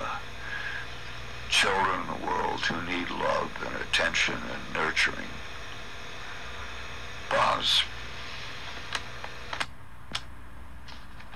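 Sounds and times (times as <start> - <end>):
steady hiss: 0.0 - 11.3
speech: 1.6 - 5.5, 7.3 - 7.9
cassette tape being flipped over: 8.6 - 10.3.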